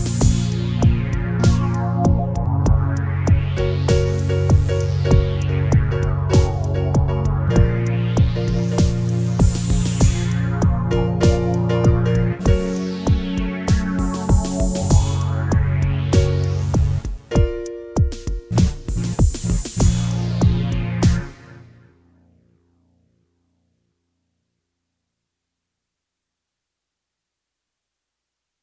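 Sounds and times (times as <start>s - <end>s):
cha cha music: 0.0s - 21.5s.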